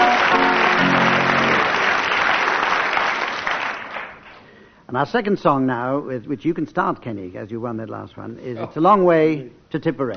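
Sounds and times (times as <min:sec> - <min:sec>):
applause: 0:00.0 - 0:04.4
speech: 0:04.9 - 0:10.1.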